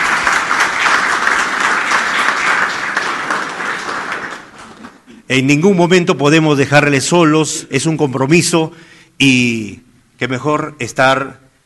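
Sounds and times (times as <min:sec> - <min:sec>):
crowd applause: 0:00.0 - 0:05.2
speech: 0:05.3 - 0:11.4.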